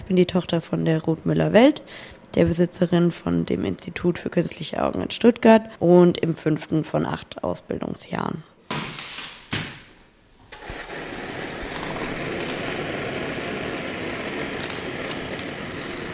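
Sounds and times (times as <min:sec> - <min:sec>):
speech: 0:00.1 - 0:08.5
special Bunsen burner hissing: 0:10.2 - 0:16.1.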